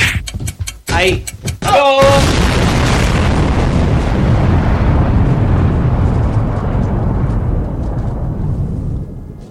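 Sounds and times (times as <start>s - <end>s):
speech: 1.0s - 2.6s
bomb explosion: 2.0s - 9.4s.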